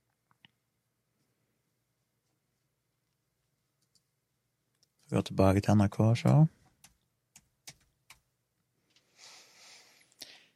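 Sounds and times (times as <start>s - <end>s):
speech: 5.1s - 6.6s
computer mouse clicking: 6.7s - 8.2s.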